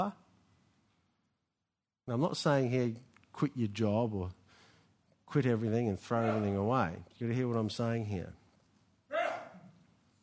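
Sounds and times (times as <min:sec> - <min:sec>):
speech: 0:00.0 - 0:00.2, 0:02.1 - 0:04.4, 0:05.3 - 0:08.4
sneeze: 0:09.1 - 0:09.6.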